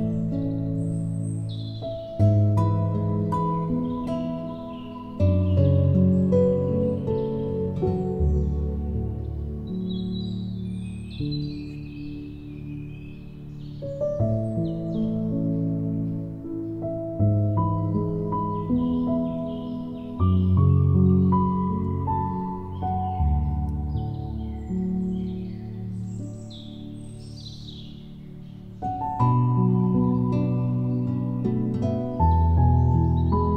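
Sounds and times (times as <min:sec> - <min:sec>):
birds singing: 0:00.0 - 0:33.5
relaxing guitar music: 0:00.0 - 0:33.5
relaxing light piano music: 0:00.0 - 0:33.5.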